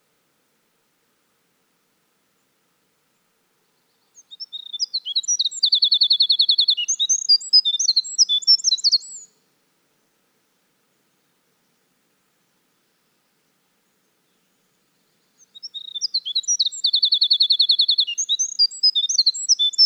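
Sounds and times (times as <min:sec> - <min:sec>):
Winter wren in full song: 0:04.2 - 0:09.3, 0:15.4 - 0:19.8.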